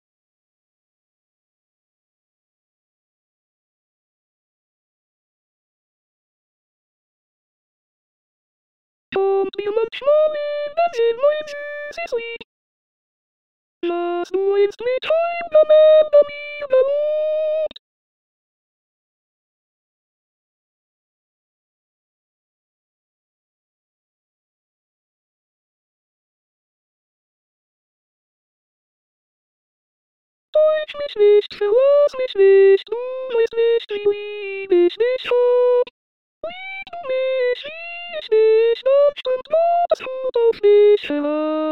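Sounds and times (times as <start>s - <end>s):
soprano singing: 9.2s - 12.4s, 13.8s - 17.8s, 30.6s - 41.7s.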